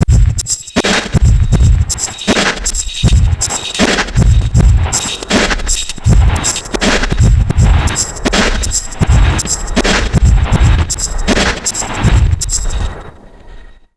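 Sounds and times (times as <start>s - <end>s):
crazy processed neuro drum loops at 80 bpm: 0.0s - 13.1s.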